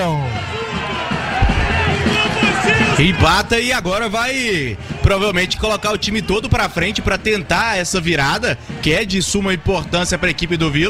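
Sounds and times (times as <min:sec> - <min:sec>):
Vila football fans roaring in celebration of an equalising goal at the Castor Cifuentes stadium: 0:00.0 - 0:10.8
speech: 0:03.0 - 0:10.8.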